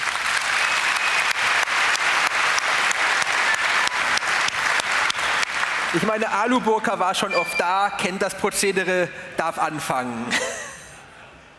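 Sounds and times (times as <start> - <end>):
audience applause: 0.0 - 6.3
speech: 5.9 - 10.5.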